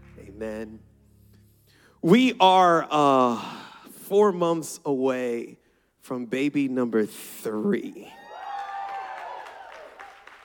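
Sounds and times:
speech: 0:00.4 - 0:00.9, 0:02.0 - 0:08.2
high-pitched whoops and voices: 0:08.1 - 0:10.1
audience clapping: 0:08.4 - 0:10.4.

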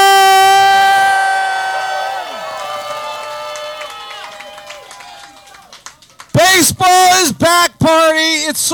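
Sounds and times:
loud horn-like tone: 0:00.1 - 0:01.7
crowd cheering and whooping at Club 400 during a Cubs fan event: 0:00.2 - 0:05.9
speech: 0:06.6 - 0:08.7.

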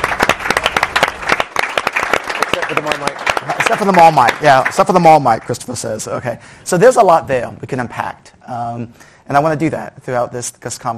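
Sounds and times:
audience round of applause: 0:00.0 - 0:05.2
speech: 0:02.7 - 0:10.9.

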